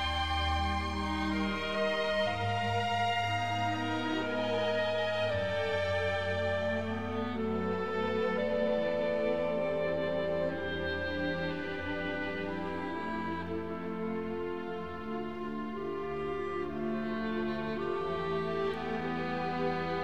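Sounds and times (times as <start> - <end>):
clarinet: 0.0 - 20.0
harp: 0.0 - 20.0
string orchestra: 0.0 - 20.0.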